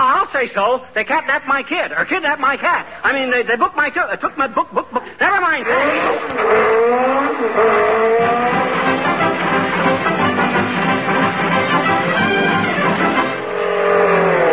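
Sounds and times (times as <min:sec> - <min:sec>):
speech: 0:00.4 - 0:08.8
jeep driving past with engine revving: 0:05.6 - 0:11.9, 0:13.0 - 0:14.5
jeep tires squealing: 0:05.6 - 0:14.5.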